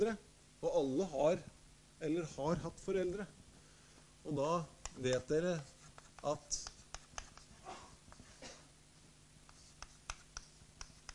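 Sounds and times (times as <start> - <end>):
speech: 0.0 - 3.4, 4.2 - 6.7
writing scratching strokes: 5.6 - 8.4, 9.5 - 11.1.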